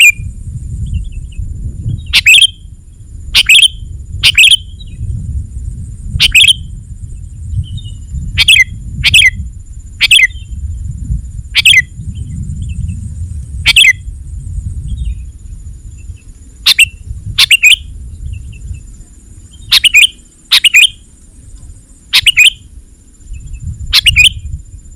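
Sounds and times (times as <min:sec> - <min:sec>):
low rumbling background: 0:00.2 - 0:24.9
sooty-headed bulbul chirpy song: 0:02.2 - 0:02.6, 0:03.4 - 0:04.7, 0:06.2 - 0:06.6, 0:16.7 - 0:17.9, 0:19.6 - 0:21.1, 0:22.1 - 0:22.7, 0:24.0 - 0:24.4.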